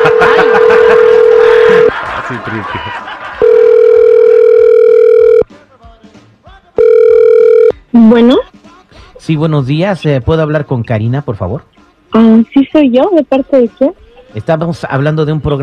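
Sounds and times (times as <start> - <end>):
telephone ringback tones on an outgoing call: 0.0 - 1.9, 3.4 - 5.4, 6.8 - 8.4
laughter: 0.0 - 3.4
speech: 8.1 - 8.4, 9.3 - 15.6.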